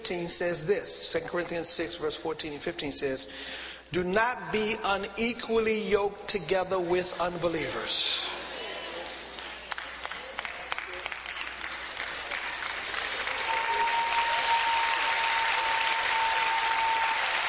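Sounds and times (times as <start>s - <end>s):
speech: 0.1s - 8.4s
audience clapping: 9.0s - 17.4s.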